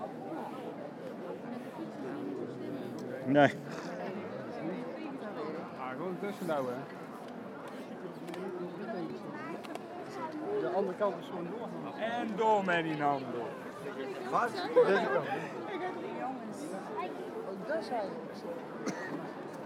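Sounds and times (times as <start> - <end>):
crowd of people on a street: 0.0 - 19.6.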